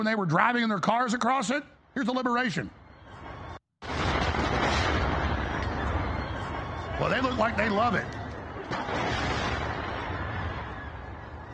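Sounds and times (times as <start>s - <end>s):
speech: 0.0s - 2.8s, 7.0s - 9.3s
explosion of a bridge being blown up: 3.8s - 11.5s.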